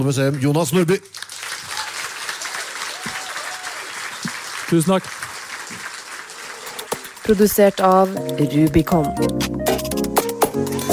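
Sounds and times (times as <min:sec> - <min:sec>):
speech: 0:00.0 - 0:01.3, 0:04.7 - 0:05.2, 0:07.3 - 0:09.9
audience applause: 0:00.0 - 0:08.2.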